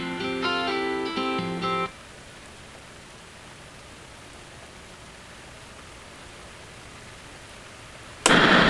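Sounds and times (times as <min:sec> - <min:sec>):
acoustic music: 0:00.0 - 0:01.9.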